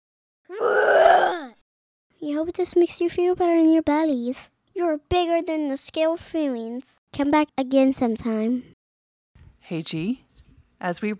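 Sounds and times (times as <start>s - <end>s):
child roaring like a lion: 0.5s - 1.6s
speech: 2.2s - 8.7s, 9.7s - 10.2s, 10.8s - 11.1s.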